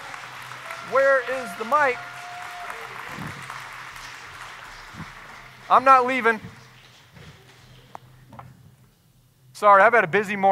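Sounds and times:
audience applause at a morning church gathering: 0.0s - 6.4s
speech: 0.9s - 2.1s, 5.7s - 6.5s, 9.6s - 10.4s.

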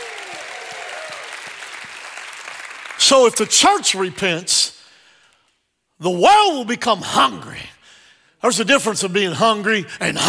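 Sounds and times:
audience hand clapping: 0.0s - 3.5s
speech: 3.0s - 4.8s, 6.0s - 7.7s, 8.4s - 10.2s.

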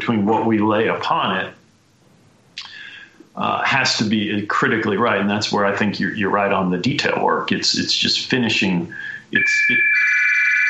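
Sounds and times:
speech: 0.1s - 1.6s, 3.4s - 10.2s
telephone ringing: 9.4s - 10.6s.

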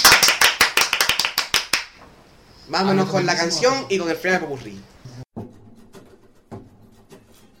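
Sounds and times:
applause: 0.0s - 2.0s
speech: 2.7s - 4.9s.

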